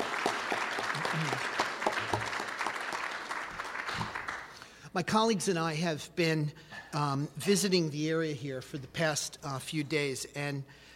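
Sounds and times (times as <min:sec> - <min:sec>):
audience applause: 0:00.0 - 0:04.6
speech: 0:01.2 - 0:01.5, 0:05.0 - 0:10.9.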